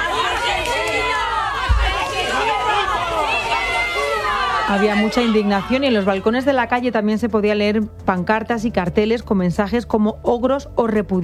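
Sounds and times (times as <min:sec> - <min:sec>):
angry crowd shouting at police van: 0:00.0 - 0:06.4
speech: 0:04.7 - 0:11.2.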